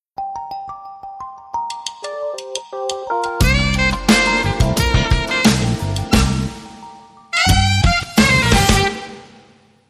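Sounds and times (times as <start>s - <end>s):
saxophone sting: 3.4s - 9.7s.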